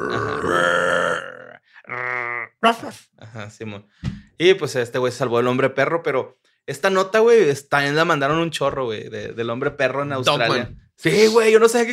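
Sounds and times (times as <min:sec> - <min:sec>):
person imitating a roar: 0:00.0 - 0:02.6
speech: 0:02.6 - 0:11.9.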